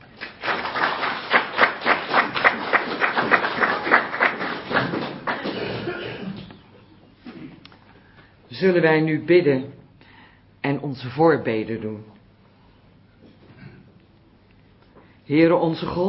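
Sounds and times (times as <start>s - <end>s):
audience applause: 0.0s - 6.0s
speech: 8.6s - 9.8s, 10.7s - 12.1s, 15.3s - 16.0s.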